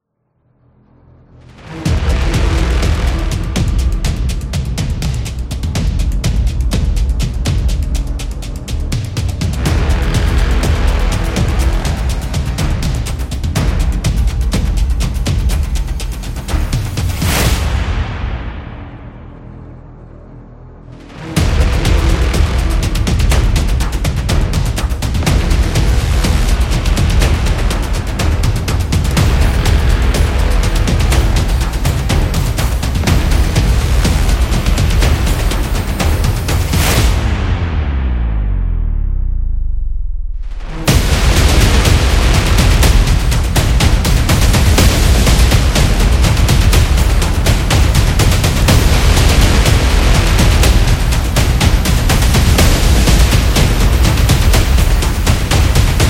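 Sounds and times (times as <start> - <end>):
epic action drums: 1.2 - 20.2, 20.8 - 39.2, 40.3 - 56.0.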